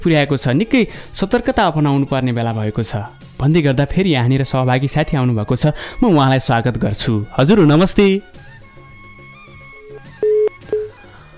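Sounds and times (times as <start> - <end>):
speech: 0.0 - 8.4
telephone line beeping as a caller drops off a call-in line: 9.8 - 11.0.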